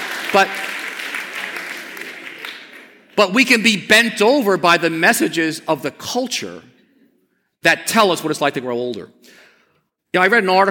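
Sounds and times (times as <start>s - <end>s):
audience clapping: 0.0s - 3.2s
speech: 0.3s - 0.7s, 3.2s - 6.7s, 7.6s - 9.4s, 10.1s - 10.6s.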